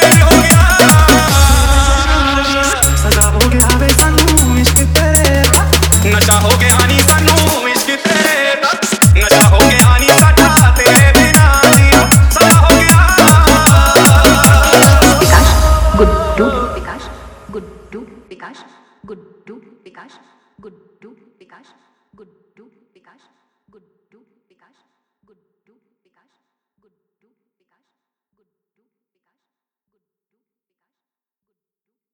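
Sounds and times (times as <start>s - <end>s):
Hindi remix music: 0.0s - 17.5s.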